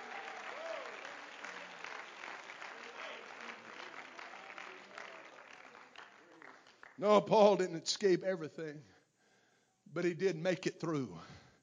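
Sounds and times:
audience clapping hands: 0.0 - 7.3
speech: 7.0 - 9.0, 10.0 - 11.4.

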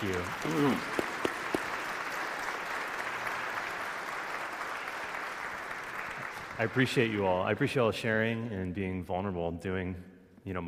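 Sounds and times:
speech: 0.0 - 1.0, 6.6 - 10.6
audience applause: 0.0 - 7.2.

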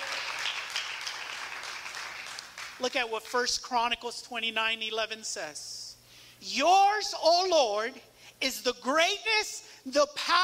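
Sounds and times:
round of applause: 0.0 - 2.8
speech: 2.8 - 5.8, 6.4 - 10.4.

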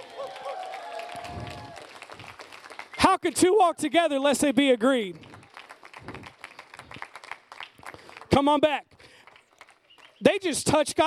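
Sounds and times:
crowd cheering with scattered whoops: 0.0 - 2.3
audience clapping: 0.0 - 10.4
speech: 3.2 - 5.2, 8.4 - 8.9, 10.2 - 11.0.

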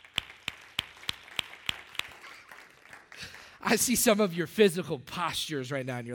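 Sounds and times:
audience clapping in unison: 0.0 - 4.0
speech: 3.6 - 6.1.

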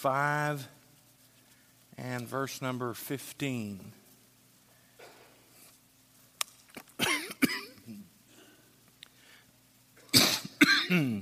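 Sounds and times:
speech: 0.0 - 0.8, 2.0 - 4.0, 10.9 - 11.2
preacher coughing and gasping from choking: 7.0 - 8.1, 10.0 - 11.2.

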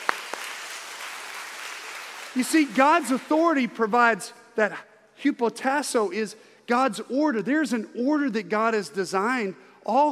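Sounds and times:
audience applause: 0.0 - 3.4
speech: 2.3 - 10.1.

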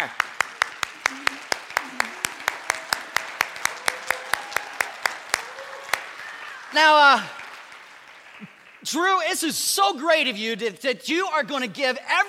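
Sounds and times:
audience applause: 0.0 - 9.2
speech: 6.8 - 7.4, 8.8 - 12.2.

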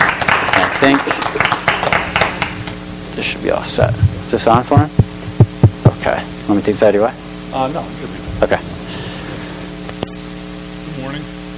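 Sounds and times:
audience applause: 0.0 - 2.8
speech: 0.9 - 1.5, 3.2 - 5.0, 6.0 - 8.7.

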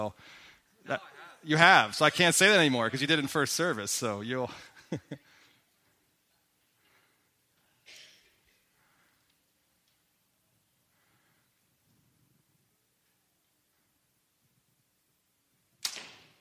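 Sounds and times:
speech: 0.0 - 5.3
laughter: 4.3 - 5.4
arrow striking the target: 15.8 - 16.4.

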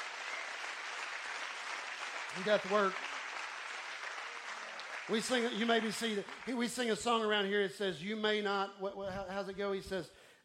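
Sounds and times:
audience clapping: 0.0 - 7.6
speech: 2.3 - 3.1, 5.1 - 10.2.

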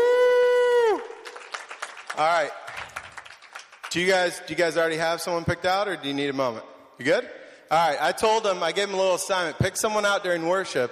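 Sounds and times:
single voice holding a long high cheer: 0.0 - 1.3
audience applause: 0.9 - 4.4
speech: 2.2 - 2.8, 3.9 - 10.8.

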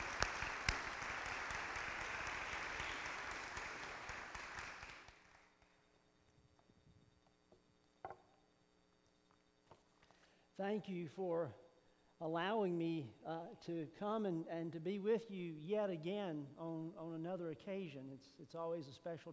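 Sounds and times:
faint audience applause welcoming a speaker: 0.0 - 5.5
small knocks: 8.0 - 8.4
speech: 10.6 - 11.6, 12.2 - 19.3.

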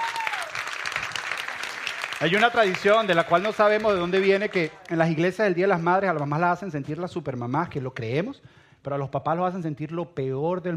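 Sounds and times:
audience applause: 0.0 - 5.3
speech: 2.2 - 10.7.

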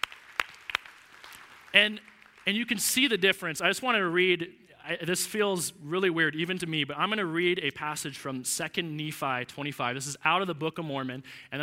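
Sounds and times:
audience applause: 0.0 - 2.8
speech: 1.7 - 11.6.

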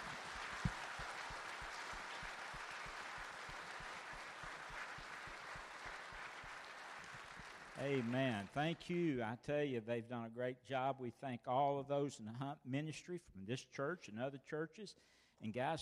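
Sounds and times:
crowd applause: 0.0 - 9.0
speech: 7.8 - 15.7.

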